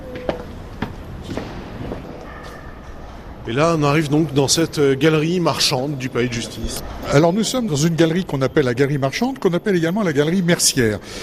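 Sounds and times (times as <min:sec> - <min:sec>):
footsteps climbing stone steps into the Palais de Justice in Paris: 0:00.0 - 0:02.2
speech: 0:03.5 - 0:11.2.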